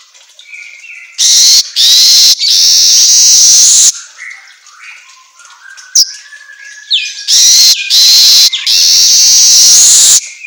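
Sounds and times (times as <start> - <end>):
Asian golden weaver sharp chip notes: 1.2 - 3.9, 7.3 - 10.2.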